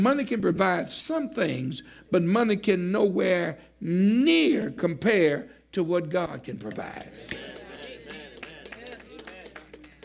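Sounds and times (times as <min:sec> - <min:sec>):
speech: 0:00.0 - 0:07.5
weak applause from audience: 0:06.6 - 0:10.0.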